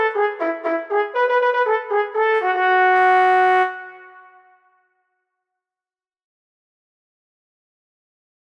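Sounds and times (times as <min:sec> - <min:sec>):
trombone: 0:00.0 - 0:04.6.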